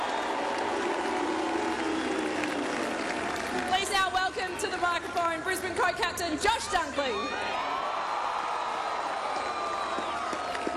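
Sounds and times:
crowd applause: 0.0 - 5.4, 7.3 - 10.7
speech: 4.4 - 7.8.

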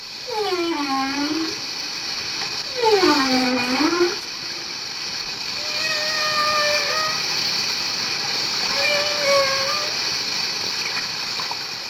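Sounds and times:
whales singing: 0.2 - 1.7, 2.6 - 4.2, 5.6 - 7.3, 8.7 - 10.0
whales hissing and sighing: 0.2 - 4.3, 5.3 - 10.4.

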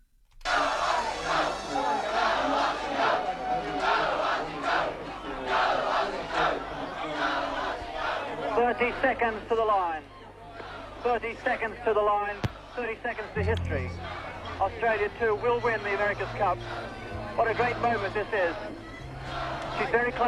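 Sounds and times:
crowd cheering wildly at the Royal Perth Yacht Club: 0.5 - 8.4, 13.7 - 20.2
speech: 8.8 - 10.2, 11.0 - 20.2.

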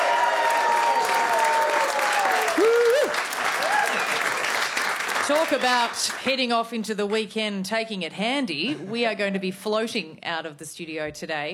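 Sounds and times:
people cheering and whooping: 0.0 - 4.4
studio audience applause: 0.0 - 6.3
speech: 5.3 - 11.5.

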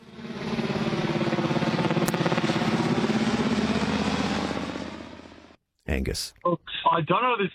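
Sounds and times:
helicopter sound effect: 0.0 - 5.6
speech: 6.0 - 7.5.

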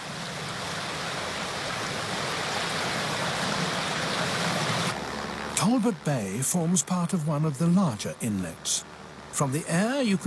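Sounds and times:
tide surging into coastal inlets along the Kimberley coastline: 0.0 - 5.0
speech: 5.6 - 10.2.

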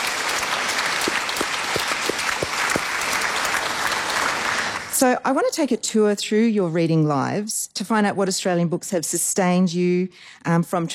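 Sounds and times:
crowd applauding: 0.0 - 5.0
speech: 5.0 - 10.9.

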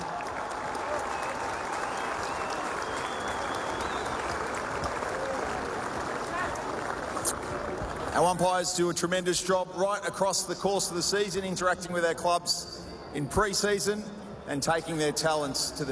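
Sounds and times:
stadium crowd applause: 0.0 - 8.4
speech: 8.2 - 15.9.

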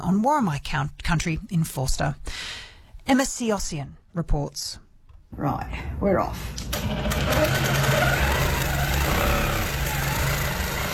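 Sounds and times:
speech: 0.0 - 2.5, 3.1 - 8.2
quilting machine whirring in a country cottage in Nabiak: 6.7 - 10.9.

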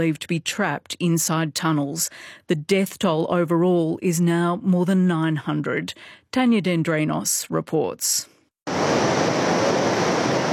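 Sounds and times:
speech: 0.0 - 9.0
torrent of muddy flash-flood water rushing downstream in central Nepal after a glacier collapse: 8.7 - 10.5.

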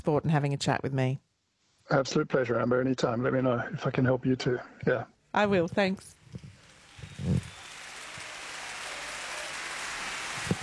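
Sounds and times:
speech: 0.0 - 1.3, 1.9 - 6.5
rain falling: 6.6 - 10.6.

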